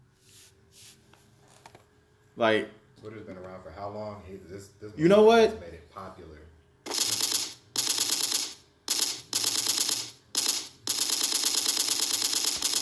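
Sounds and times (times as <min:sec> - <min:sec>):
speech: 0:02.4 - 0:06.6
automatic gunfire sound effects: 0:06.9 - 0:12.7.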